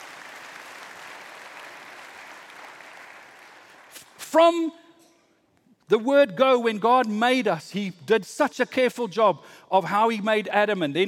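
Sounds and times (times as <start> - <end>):
audience clapping: 0.0 - 4.0
speech: 4.3 - 4.8, 5.9 - 11.0.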